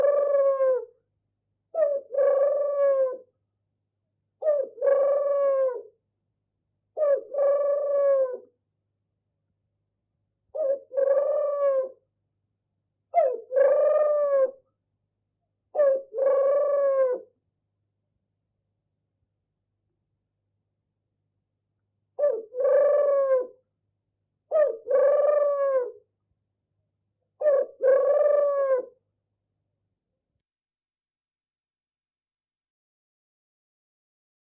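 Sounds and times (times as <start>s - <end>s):
turtle dove purring: 0.0s - 0.9s, 1.8s - 3.3s, 4.4s - 5.9s, 7.0s - 8.5s, 10.6s - 12.0s, 13.2s - 14.6s, 15.8s - 17.3s, 22.2s - 23.6s, 24.5s - 26.0s, 27.4s - 29.0s.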